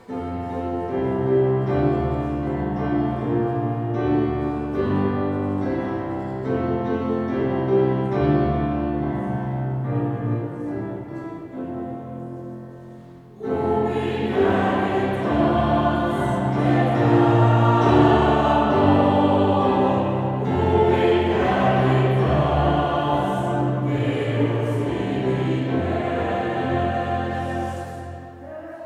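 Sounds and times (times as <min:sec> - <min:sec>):
Taize chant: 0:00.0 - 0:28.8.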